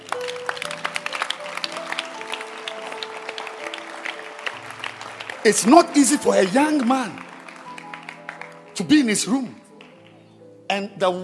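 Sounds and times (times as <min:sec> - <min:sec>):
crowd applause: 0:00.0 - 0:10.2
speech: 0:05.4 - 0:07.3, 0:08.8 - 0:09.6, 0:10.8 - 0:11.2.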